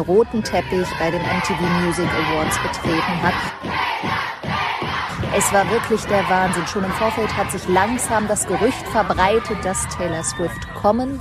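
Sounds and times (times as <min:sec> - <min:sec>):
speech: 0:00.0 - 0:04.2, 0:05.3 - 0:11.1
fans cheering and screaming: 0:00.0 - 0:11.1.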